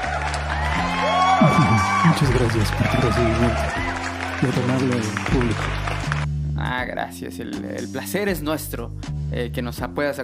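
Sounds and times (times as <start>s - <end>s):
audience cheering and applauding: 0.0s - 6.3s
speech: 1.4s - 6.0s, 6.9s - 10.2s.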